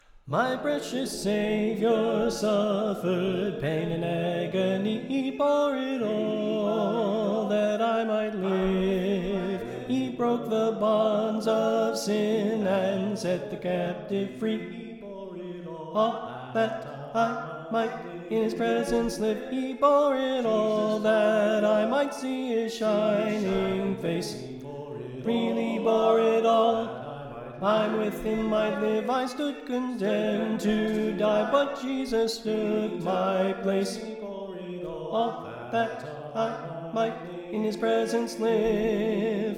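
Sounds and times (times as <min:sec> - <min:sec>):
soprano singing: 0:00.3 - 0:39.5.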